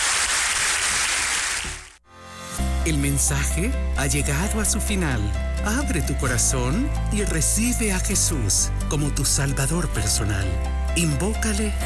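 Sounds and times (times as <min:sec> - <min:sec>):
congregation applauding during a church service: 0:00.0 - 0:02.0
speech: 0:02.9 - 0:11.8.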